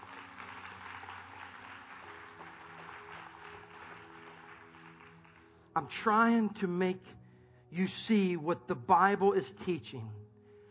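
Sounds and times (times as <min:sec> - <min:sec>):
audience applauding: 0:00.0 - 0:05.8
speech: 0:05.8 - 0:10.2.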